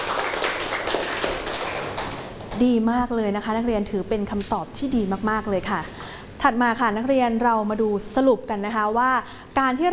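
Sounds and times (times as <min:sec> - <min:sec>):
classroom students clapping for a classmate: 0:00.0 - 0:02.6
speech: 0:02.6 - 0:09.9.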